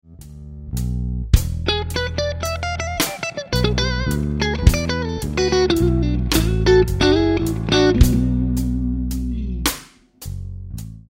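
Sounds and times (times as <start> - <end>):
guitar lick: 1.6 - 9.9.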